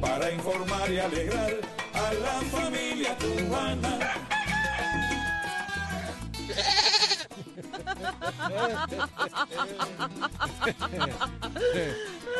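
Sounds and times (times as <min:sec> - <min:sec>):
speech: 0:00.2 - 0:04.4, 0:08.1 - 0:12.3
man imitating a goat bleating: 0:05.0 - 0:07.4
laughter: 0:07.0 - 0:12.3.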